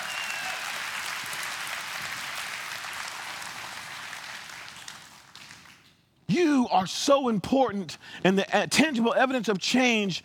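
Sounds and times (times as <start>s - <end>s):
audience applause: 0.0s - 5.8s
speech: 6.7s - 10.2s.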